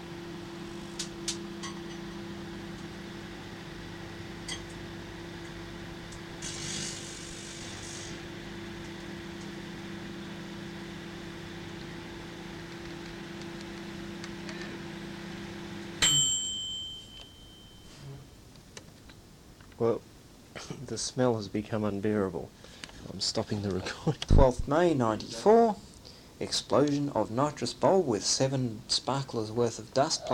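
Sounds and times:
microwave oven running with computer chips inside: 0.0s - 20.5s
crackling sizzling bursts: 6.4s - 8.2s
speech: 19.8s - 20.0s, 20.9s - 22.6s, 23.2s - 25.8s, 26.4s - 30.3s.

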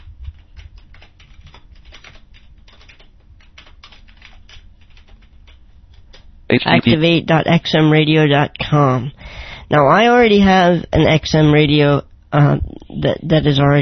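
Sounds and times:
typing a web address on a computer keyboard: 0.0s - 6.3s
speech: 6.5s - 13.8s.

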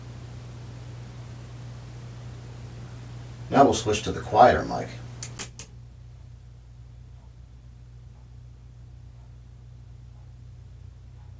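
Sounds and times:
speech: 3.5s - 5.0s
quartz wall clock ticking: 7.0s - 11.3s.

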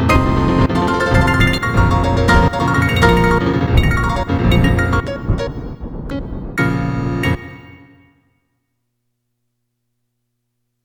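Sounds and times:
slowed black MIDI on Yamaha DGX205 keyboard: 0.0s - 7.8s.

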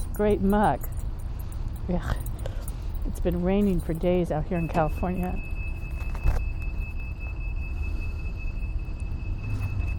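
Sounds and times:
speech: 0.2s - 1.0s, 1.9s - 2.3s, 3.1s - 5.5s
little red disability cart backing up: 4.0s - 9.9s.

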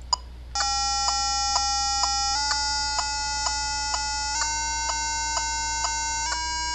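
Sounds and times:
metronome ticking: 0.0s - 6.7s
steady electronic tuner tone: 0.6s - 6.7s.

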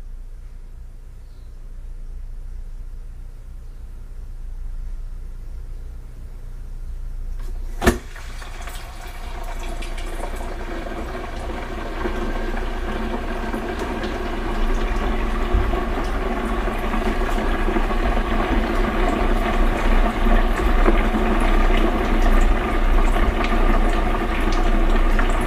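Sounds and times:
food bubbling and sizzling in a deep fat fryer with the lid closed: 7.8s - 25.4s.

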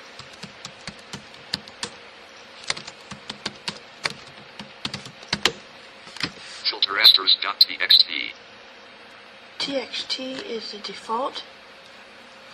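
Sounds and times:
typing a file name on a computer keyboard: 0.2s - 2.0s, 2.6s - 5.6s
speech: 7.1s - 8.5s, 9.6s - 11.6s.

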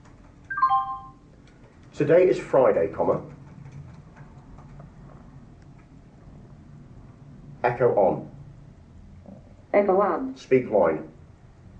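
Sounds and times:
JAWS screen reader microphone status sound: 0.5s - 1.2s
speech: 2.0s - 3.4s, 7.7s - 8.3s, 9.8s - 11.1s.

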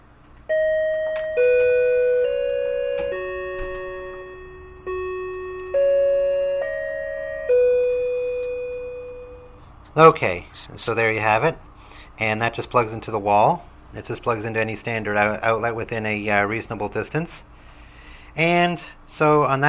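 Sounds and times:
wireless plug-in door chime playing a four-note melody: 0.5s - 9.6s
speech: 10.0s - 17.5s, 18.4s - 19.6s.

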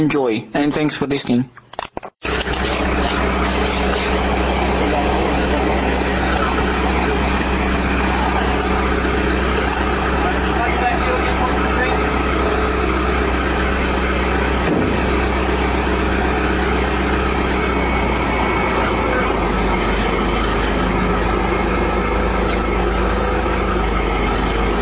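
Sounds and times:
speech: 0.0s - 1.9s
crane truck's heavy engine idling during rainwater tank installation: 2.2s - 24.8s
indistinct voices: 2.4s - 24.8s
sharp knock: 14.6s - 15.1s.

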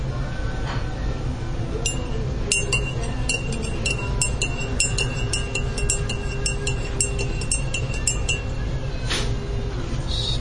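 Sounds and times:
low hum: 0.0s - 10.3s
spoon stirring and clinking in a cup: 1.8s - 8.8s.

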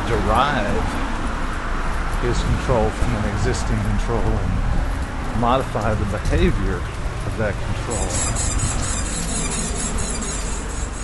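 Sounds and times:
dense noisy background: 0.0s - 11.0s
speech: 0.1s - 1.1s, 2.2s - 4.7s, 5.4s - 8.8s
high squeaky squealing: 7.2s - 11.0s.

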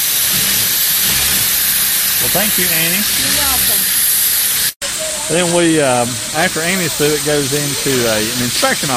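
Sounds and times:
sewing machine running, stitching binding: 0.2s - 3.8s
speech: 2.2s - 4.0s, 5.3s - 8.9s.

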